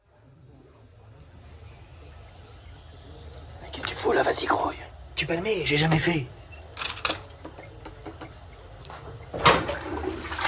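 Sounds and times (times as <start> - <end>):
speech: 4.2 - 6.4
toilet flushing: 9.4 - 10.4.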